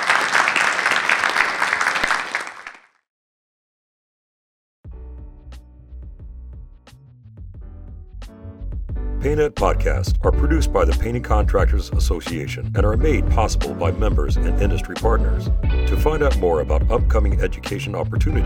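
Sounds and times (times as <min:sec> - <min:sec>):
audience applause: 0:00.0 - 0:02.9
speech: 0:09.2 - 0:18.4.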